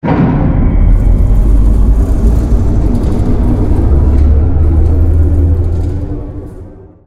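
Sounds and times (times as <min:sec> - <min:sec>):
train caboose starting up: 0:00.0 - 0:07.0.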